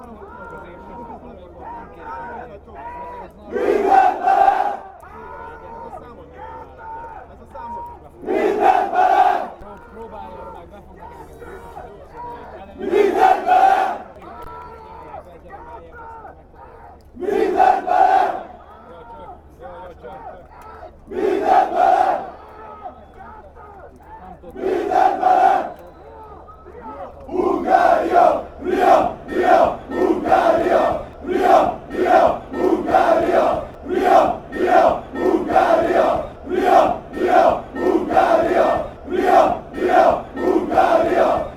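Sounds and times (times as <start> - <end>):
people shouting a chant: 1.6 - 5.8, 8.2 - 9.6, 12.8 - 14.4, 16.6 - 18.8, 21.1 - 23.0, 24.5 - 25.8, 26.7 - 41.5.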